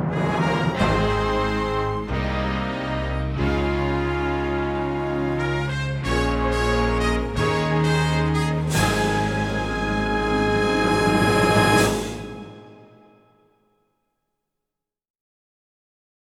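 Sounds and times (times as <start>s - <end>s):
instrumental fanfare: 0.1s - 13.3s.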